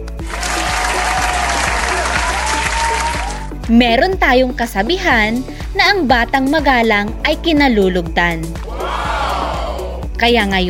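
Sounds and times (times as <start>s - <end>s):
loud applause: 0.2s - 3.5s, 8.6s - 9.9s
speech: 3.7s - 8.7s, 10.2s - 10.6s.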